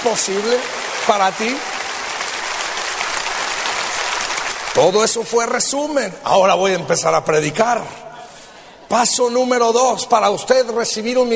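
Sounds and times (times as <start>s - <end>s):
speech: 0.0s - 1.8s, 4.8s - 8.1s, 8.9s - 11.3s
congregation clapping in thanks to God at a Spanish-language church service: 0.0s - 5.6s.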